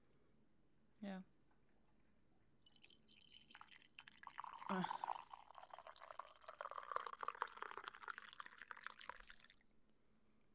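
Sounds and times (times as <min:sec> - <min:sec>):
speech: 0:01.0 - 0:01.3, 0:04.8 - 0:05.0
coffee being poured into a cup: 0:02.6 - 0:09.7.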